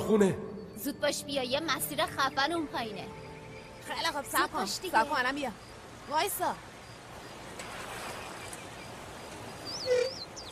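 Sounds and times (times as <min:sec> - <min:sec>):
speech: 0:00.1 - 0:03.2, 0:03.8 - 0:06.7
dog whining: 0:09.8 - 0:10.3
thin high squeaky dog yips: 0:09.8 - 0:10.3.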